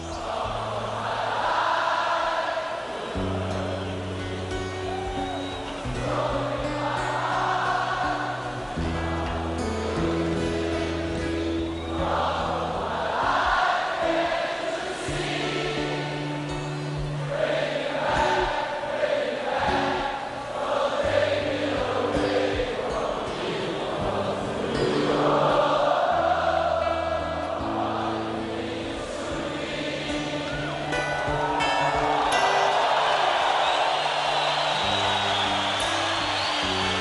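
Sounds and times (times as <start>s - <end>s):
large audience singing along in chorus at 1985 Rock in Rio: 0.0s - 36.9s.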